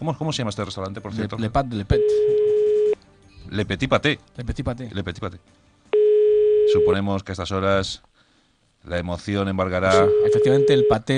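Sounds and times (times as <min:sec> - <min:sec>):
speech: 0:00.0 - 0:02.6, 0:03.5 - 0:05.7, 0:06.7 - 0:08.1, 0:08.8 - 0:11.1
telephone line tone as a call is placed to a restaurant in Brussels: 0:06.0 - 0:07.0, 0:09.9 - 0:11.0.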